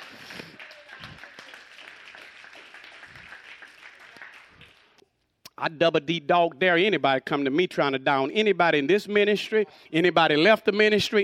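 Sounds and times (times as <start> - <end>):
audience clapping and applauding: 0.0 - 5.0
speech: 5.6 - 11.2.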